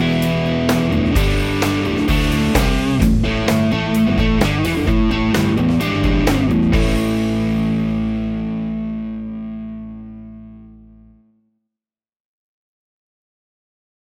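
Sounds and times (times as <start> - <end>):
distorted Stratocaster electric guitar on neck pickup: 0.0 - 11.2.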